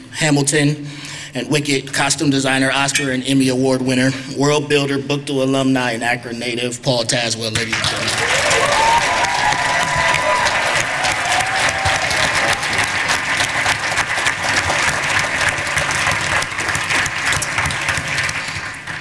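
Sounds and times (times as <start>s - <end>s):
speech: 0.2s - 8.7s
large audience applause: 7.7s - 18.9s
audience cheers and whoops: 8.0s - 13.1s.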